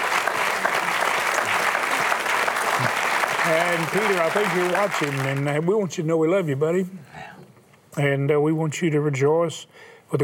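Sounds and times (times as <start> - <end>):
crowd applause: 0.0 - 5.6
speech: 3.5 - 7.4, 8.0 - 10.2.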